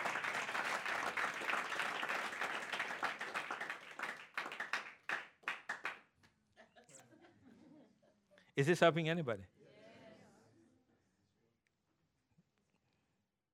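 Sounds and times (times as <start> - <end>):
audience clapping and applauding: 0.0 - 6.1
speech: 8.6 - 9.6.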